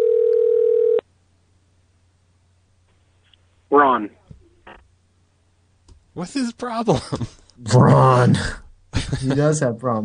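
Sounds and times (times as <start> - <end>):
telephone call ringing tone: 0.0 - 1.0
speech: 3.9 - 4.2, 6.2 - 10.0.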